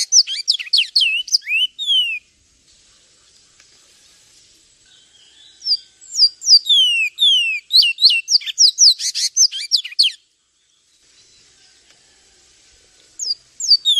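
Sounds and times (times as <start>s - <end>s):
Javan tesia piercing high chirps and falling whistles: 0.0s - 2.2s, 5.6s - 10.2s, 13.2s - 13.9s.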